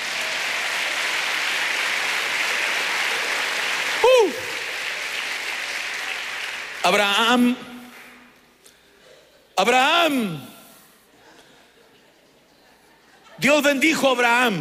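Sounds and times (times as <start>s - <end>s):
audience clapping: 0.0s - 8.4s
speech: 6.9s - 7.7s, 9.6s - 10.5s, 13.4s - 14.6s
laughter: 11.2s - 13.4s.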